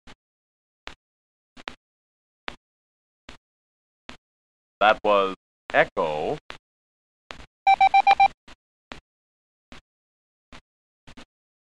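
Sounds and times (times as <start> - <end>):
speech: 4.8 - 6.4
Morse code beeps for the digit five: 7.7 - 8.3.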